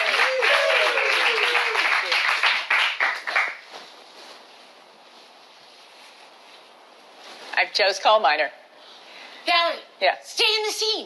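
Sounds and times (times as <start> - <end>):
voices cheering: 0.0 - 2.2
audience applause in a live improv class: 0.0 - 3.6
speech: 7.8 - 8.6, 9.5 - 11.0.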